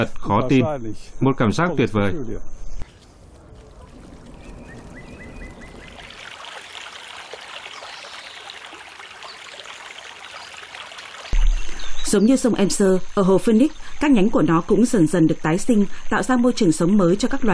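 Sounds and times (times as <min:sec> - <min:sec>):
speech: 0:00.0 - 0:02.6, 0:12.1 - 0:17.5
water splashing as a boat is paddled on a lake: 0:02.9 - 0:11.7.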